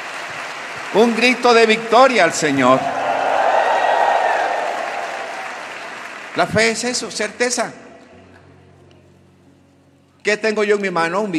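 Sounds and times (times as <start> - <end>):
church congregation applauding with hands overhead: 0.0 - 7.5
speech: 0.9 - 3.0, 6.4 - 7.8, 10.3 - 11.3.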